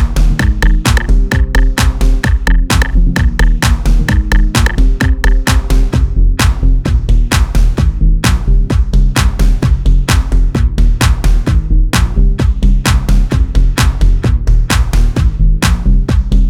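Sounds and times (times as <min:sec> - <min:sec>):
compressed mastered kick drum: 0:00.0 - 0:16.4.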